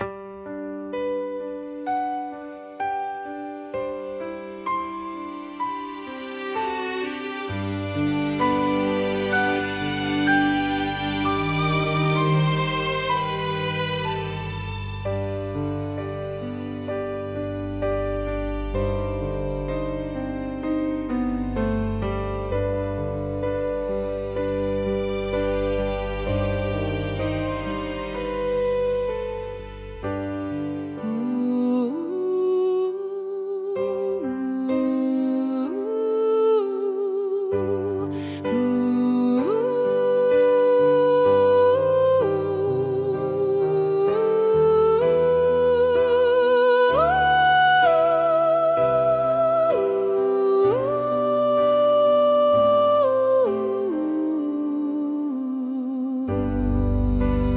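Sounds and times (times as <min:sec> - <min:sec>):
inspiring piano and strings: 0:00.0 - 0:57.5.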